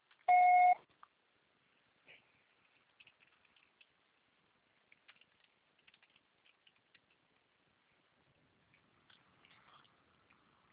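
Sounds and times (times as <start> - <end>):
voicemail beep: 0.3 - 0.8.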